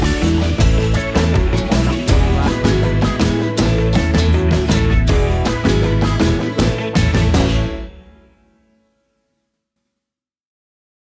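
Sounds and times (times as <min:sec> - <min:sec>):
calypso summer groove: 0:00.0 - 0:08.2.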